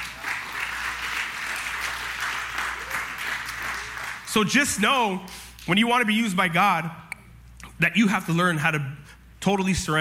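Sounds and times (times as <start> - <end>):
audience clapping: 0.0 - 5.7
speech: 4.4 - 7.0, 7.8 - 9.9.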